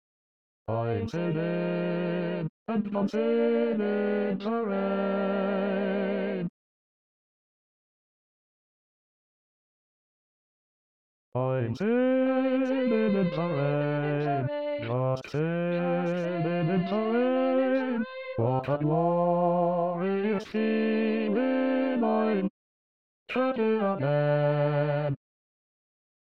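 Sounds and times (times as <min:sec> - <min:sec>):
bass voice singing in SATB choir in E flat: 0:00.7 - 0:06.5, 0:11.4 - 0:22.5, 0:23.3 - 0:25.2.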